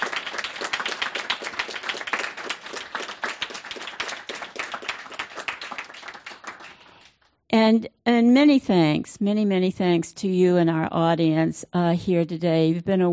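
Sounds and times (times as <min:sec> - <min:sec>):
audience applause for speakers: 0:00.0 - 0:07.2
speech: 0:07.6 - 0:13.1.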